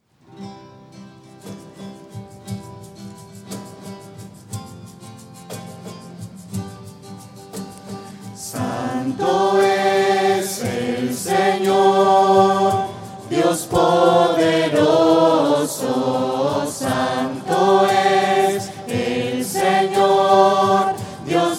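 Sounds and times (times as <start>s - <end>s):
voices: 8.4s - 21.5s.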